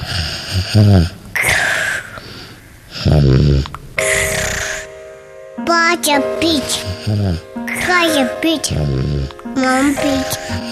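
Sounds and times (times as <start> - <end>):
young child imitating dad's snoring: 0.0 - 2.2, 3.0 - 4.9, 6.8 - 7.5, 8.7 - 10.7
breathy hissing noises: 0.0 - 5.0, 6.7 - 8.0, 8.7 - 10.7
speech: 0.7 - 1.2, 3.0 - 3.8, 5.7 - 10.7.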